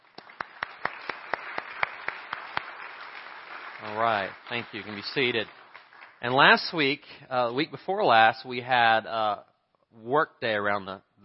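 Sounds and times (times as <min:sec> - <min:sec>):
audience applause: 0:00.0 - 0:06.7
speech: 0:03.8 - 0:05.6, 0:06.2 - 0:11.2.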